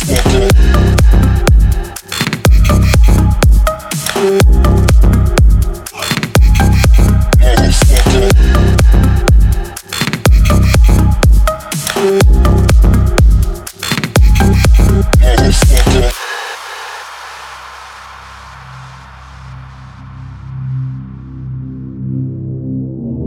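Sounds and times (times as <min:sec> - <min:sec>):
loud club bass on front car audio: 0:00.0 - 0:11.6, 0:12.2 - 0:16.2.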